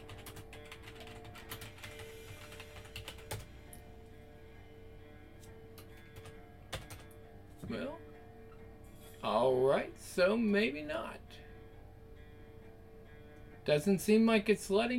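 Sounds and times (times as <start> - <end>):
computer keyboard typing: 0.0 - 3.5, 5.8 - 7.2
speech: 7.7 - 8.0, 9.2 - 11.2, 13.6 - 14.9.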